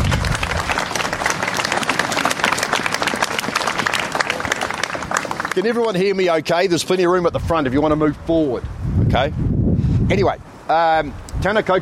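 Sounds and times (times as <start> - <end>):
audience applause after drum performance: 0.0 - 6.2
speech: 5.6 - 11.8.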